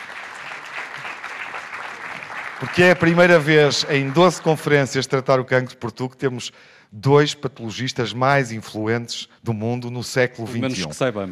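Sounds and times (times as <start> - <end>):
audience applause: 0.0 - 5.1
speech: 2.6 - 11.3
laughter: 10.6 - 11.0.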